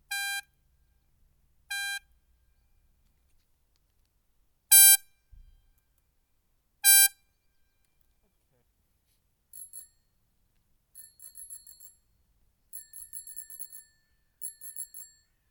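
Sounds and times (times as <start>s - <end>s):
Airzound bike air horn: 0.1s - 0.4s, 4.7s - 5.0s, 6.8s - 7.1s.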